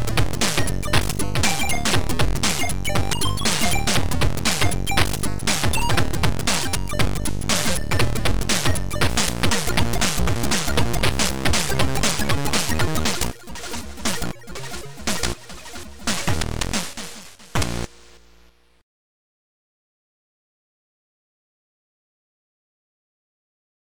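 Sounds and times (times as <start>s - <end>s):
funk remix: 0.0s - 18.2s.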